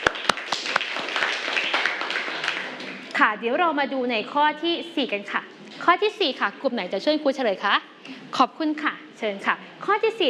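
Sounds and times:
classroom clapping: 0.0 - 3.4
speech: 3.2 - 10.2.

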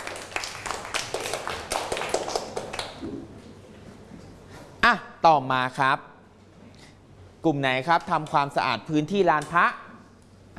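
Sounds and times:
children clapping for a classmate: 0.0 - 3.0
speech: 4.9 - 6.1, 7.4 - 9.8.

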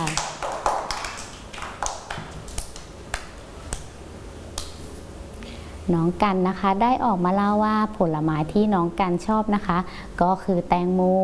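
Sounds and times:
children clapping: 0.0 - 3.8
speech: 5.9 - 11.2.

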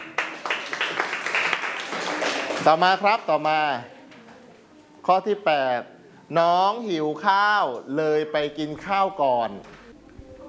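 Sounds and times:
group clapping during a Thai grammar lesson: 0.0 - 3.6
speech: 2.6 - 4.0, 5.0 - 9.8.

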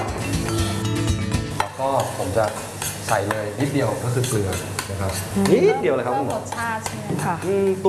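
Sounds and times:
shallots sizzling as stir-fried in a pan: 0.2 - 7.8
utensil clinking against the pan: 1.6 - 7.6
speech: 2.4 - 7.8.

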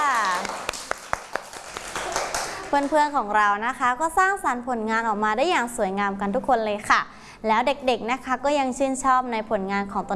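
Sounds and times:
children clapping in a classroom after a clay-modelling activity: 0.0 - 3.1
speech: 2.7 - 10.1.

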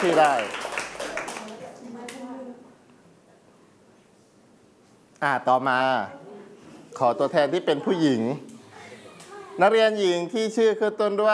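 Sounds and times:
speech: 0.0 - 0.7, 5.2 - 6.2, 7.0 - 8.5, 9.6 - 11.3
classroom applause for a student: 0.0 - 1.6.

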